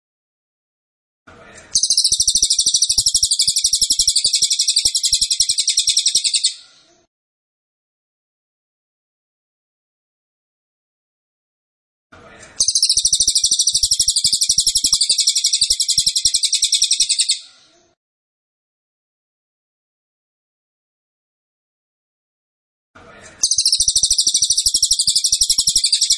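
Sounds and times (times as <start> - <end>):
cililin singing a metallic trill: 1.8 - 6.6, 12.6 - 17.4, 23.4 - 26.1.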